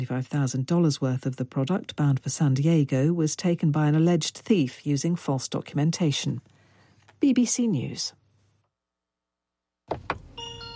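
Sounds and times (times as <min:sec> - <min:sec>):
speech: 0:00.0 - 0:06.5, 0:07.2 - 0:08.2, 0:09.9 - 0:10.2
car door clunks as someone gets in: 0:09.9 - 0:10.4
car's cheery electronic welcome tune: 0:10.4 - 0:10.7.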